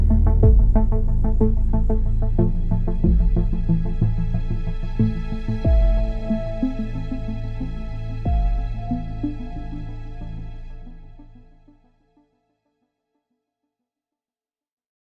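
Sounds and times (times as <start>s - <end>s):
infection ambience: 0.0s - 11.6s.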